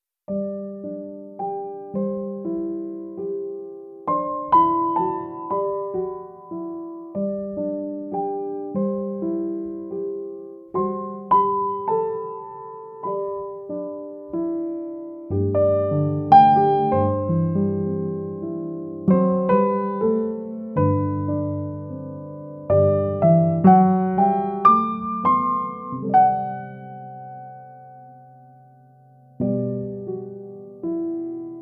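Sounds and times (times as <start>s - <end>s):
piano: 0.0s - 31.6s.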